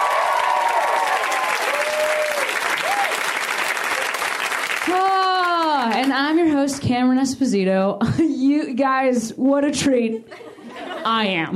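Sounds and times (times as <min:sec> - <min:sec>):
audience clapping: 0:00.0 - 0:06.4
speech: 0:05.9 - 0:10.4, 0:11.0 - 0:11.5.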